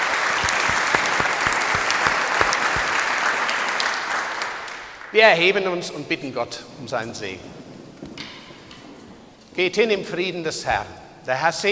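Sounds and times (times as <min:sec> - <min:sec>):
audience applause: 0:00.2 - 0:04.4
speech: 0:05.1 - 0:07.6, 0:09.6 - 0:11.6.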